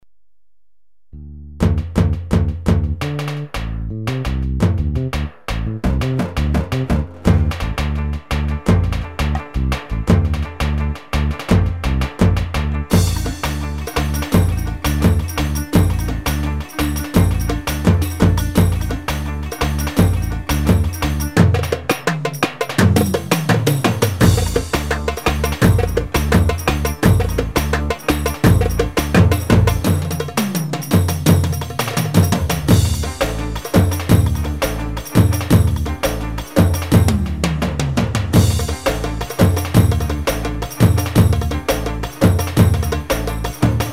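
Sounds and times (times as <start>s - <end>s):
Bursa ciftetelli rhythm on a Ketron: 1.6s - 43.9s.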